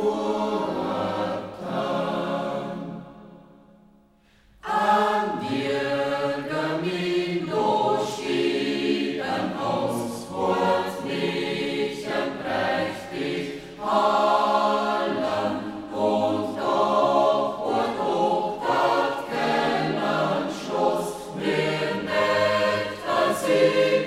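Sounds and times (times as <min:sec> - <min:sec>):
village choir singing in local dialect: 0:00.0 - 0:03.9, 0:04.6 - 0:24.0.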